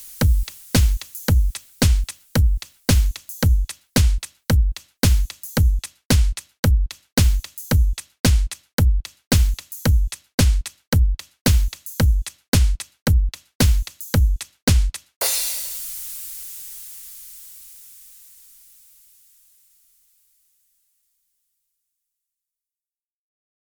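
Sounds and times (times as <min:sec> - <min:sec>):
drum track at 112 BPM: 0:00.0 - 0:18.1.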